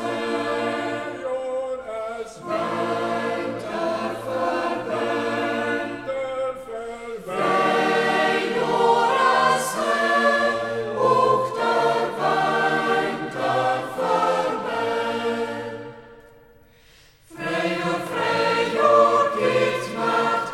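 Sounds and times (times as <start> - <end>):
choir singing in Reußmarkt local dialect: 0.0 - 20.5.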